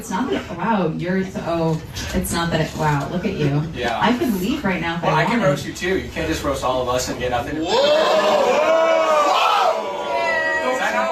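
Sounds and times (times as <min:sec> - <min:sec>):
speech: 0:00.0 - 0:08.8
crowd going whoa: 0:07.6 - 0:11.0.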